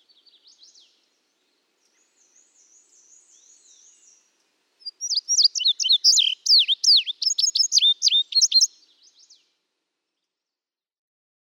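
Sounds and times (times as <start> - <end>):
Indigo Bunting singing: 4.8 - 8.7.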